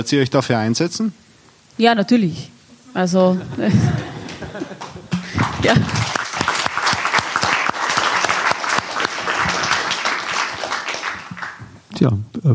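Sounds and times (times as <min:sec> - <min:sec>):
speech: 0:00.0 - 0:01.2, 0:01.8 - 0:04.2, 0:05.6 - 0:06.1, 0:12.0 - 0:12.5
laughter: 0:03.4 - 0:11.4
audience applause: 0:04.0 - 0:11.8.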